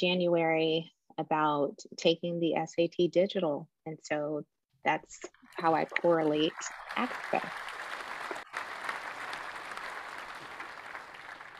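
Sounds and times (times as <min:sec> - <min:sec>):
speech: 0:00.0 - 0:07.7
large audience standing ovation applause: 0:05.6 - 0:11.5.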